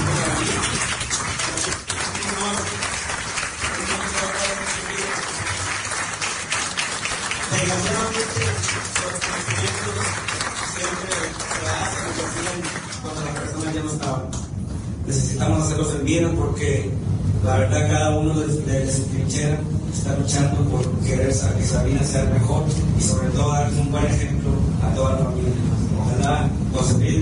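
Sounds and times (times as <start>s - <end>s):
applause at a municipal ceremony in Sabinas Coahuila: 0.0s - 14.4s
speech: 15.1s - 27.2s.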